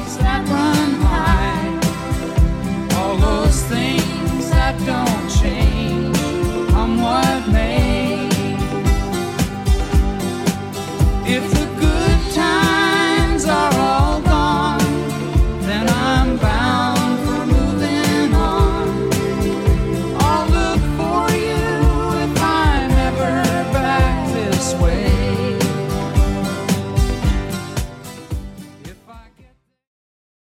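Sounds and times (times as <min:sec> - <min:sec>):
1970s style drum beat at 111 bpm: 0:00.2 - 0:29.2.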